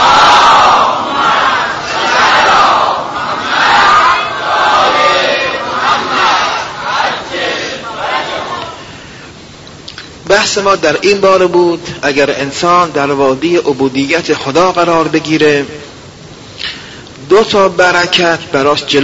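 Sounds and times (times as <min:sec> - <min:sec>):
congregation loudly reciting salawat in unison: 0:00.0 - 0:08.9
speech: 0:10.6 - 0:15.9, 0:17.3 - 0:19.0.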